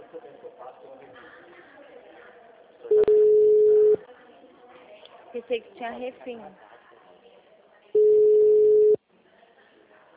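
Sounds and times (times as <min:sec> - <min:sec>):
telephone tone after a dropped call: 0:02.9 - 0:04.0, 0:08.0 - 0:09.0
speech: 0:05.4 - 0:06.7.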